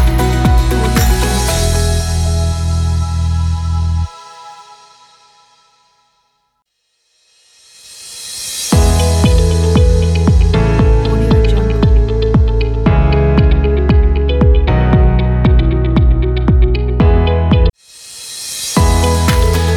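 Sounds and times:
simple business music: 0:00.0 - 0:05.7, 0:08.7 - 0:17.8, 0:18.8 - 0:19.7.

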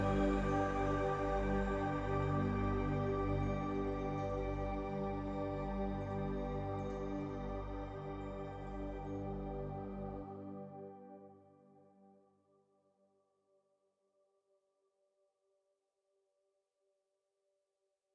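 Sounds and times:
meditation music: 0:00.0 - 0:12.3.

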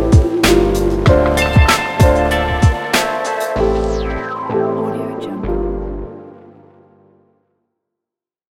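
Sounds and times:
hip hop music: 0:00.0 - 0:06.7.

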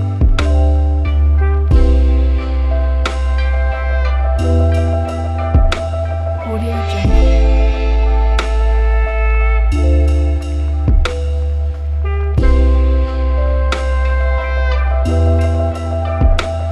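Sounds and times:
chillout soundscape: 0:00.0 - 0:16.7.

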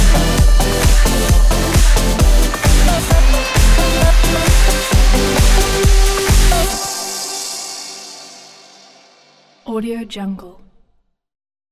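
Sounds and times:
Swedish house music: 0:00.0 - 0:09.3.

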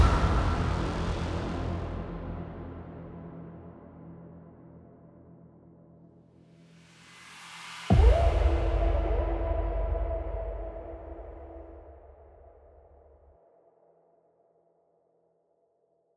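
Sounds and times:
dark trailer music: 0:00.0 - 0:06.2, 0:07.9 - 0:12.6.

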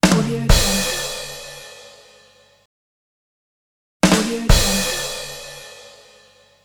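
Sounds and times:
comedy drum roll: 0:00.0 - 0:01.5, 0:04.0 - 0:05.4.

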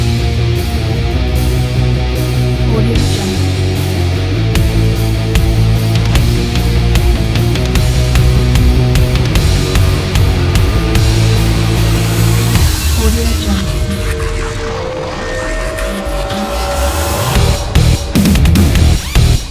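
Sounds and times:
dark electronic dubstep metal: 0:00.0 - 0:19.4.

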